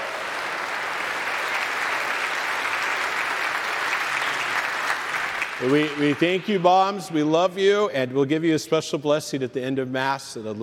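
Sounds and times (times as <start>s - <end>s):
audience applause: 0.0s - 7.1s
speech: 5.6s - 10.6s.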